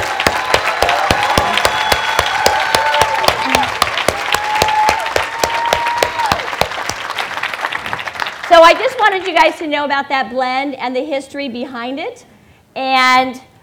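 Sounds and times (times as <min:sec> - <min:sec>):
round of applause: 0:00.0 - 0:09.4
speech: 0:08.6 - 0:13.5.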